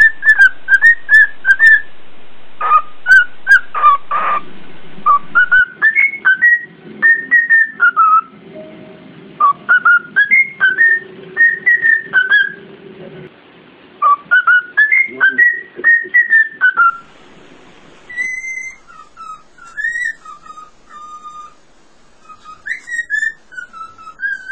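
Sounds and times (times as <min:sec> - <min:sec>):
cockatiel whistling: 0:00.0 - 0:01.9, 0:02.6 - 0:08.3, 0:09.4 - 0:12.6, 0:14.0 - 0:17.1, 0:18.0 - 0:24.5
steady hiss: 0:00.0 - 0:05.7, 0:16.7 - 0:24.5.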